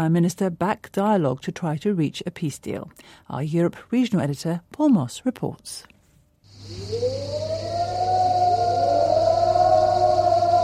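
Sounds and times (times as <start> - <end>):
speech: 0.0 - 5.9, 6.6 - 7.8
civil defense siren wailing at dawn in Cyprus: 6.8 - 10.6.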